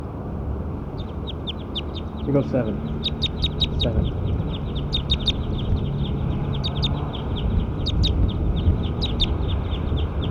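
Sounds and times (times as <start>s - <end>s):
bird call: 0.9s - 10.2s
speech: 2.3s - 3.2s, 3.8s - 4.2s.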